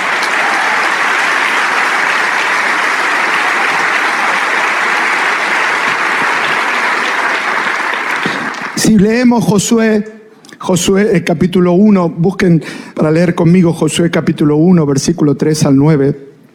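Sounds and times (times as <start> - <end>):
audience applause: 0.0 - 9.0
speech: 8.9 - 16.3.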